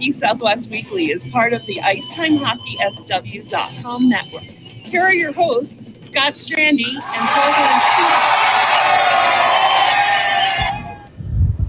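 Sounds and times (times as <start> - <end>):
speech: 0.0 - 8.4
audience cheering: 6.9 - 11.1.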